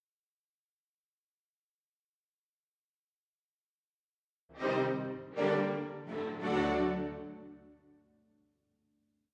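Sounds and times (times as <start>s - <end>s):
pianists playing piano: 4.6s - 8.0s.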